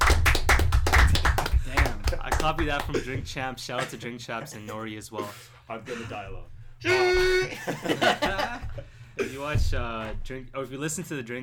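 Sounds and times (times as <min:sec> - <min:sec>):
several people clapping: 0:00.0 - 0:03.4
speech: 0:02.4 - 0:11.4
laughter: 0:05.8 - 0:09.6.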